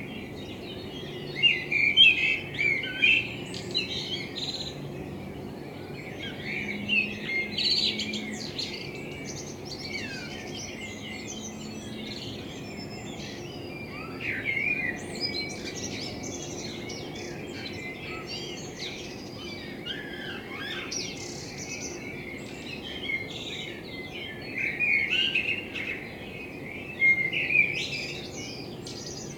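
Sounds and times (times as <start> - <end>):
common blackbird song of warbled phrases: 0.0 - 29.3.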